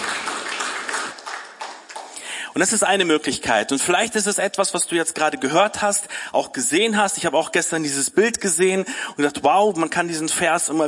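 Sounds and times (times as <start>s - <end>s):
audience applause: 0.0s - 2.2s
speech: 2.6s - 10.8s.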